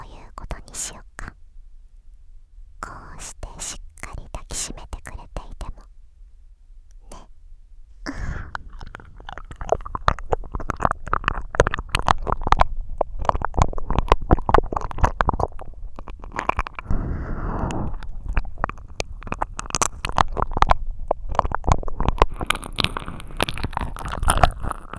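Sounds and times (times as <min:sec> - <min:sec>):
ear licking: 0:03.2 - 0:05.8, 0:08.1 - 0:24.9.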